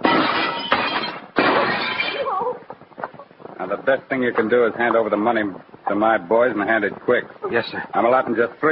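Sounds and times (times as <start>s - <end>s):
glass being smashed in: 0.0s - 2.3s
speech: 3.7s - 8.7s.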